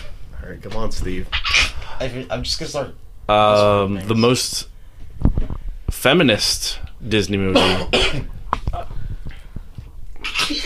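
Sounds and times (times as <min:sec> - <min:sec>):
speech: 0:00.5 - 0:04.7, 0:06.0 - 0:08.3
person coughing: 0:07.5 - 0:08.9, 0:10.2 - 0:10.6.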